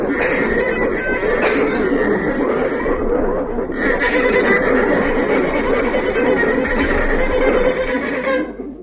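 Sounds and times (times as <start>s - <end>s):
violin: 0.0s - 8.8s
person coughing: 1.4s - 1.7s.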